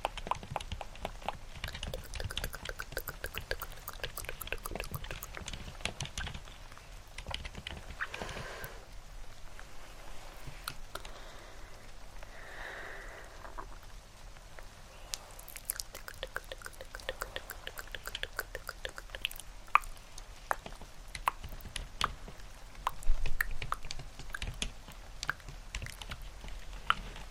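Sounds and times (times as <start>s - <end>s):
dense irregular clicking and tapping: 0.0s - 6.5s, 15.6s - 27.2s
steady rain-like hiss: 0.0s - 27.2s.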